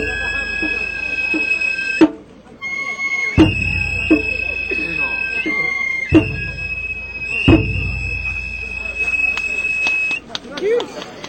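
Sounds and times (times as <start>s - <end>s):
kagura bayashi drum and flute ensemble: 0.0s - 10.4s.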